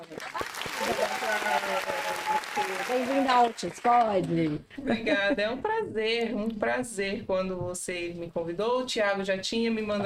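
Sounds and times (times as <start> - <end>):
round of applause from a group: 0.0 - 4.4
speech: 2.9 - 10.0.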